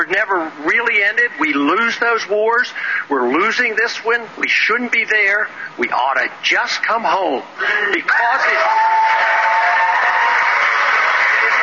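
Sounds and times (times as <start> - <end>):
speech: 0.0 - 9.2
crowd booing and cheering: 8.1 - 11.6.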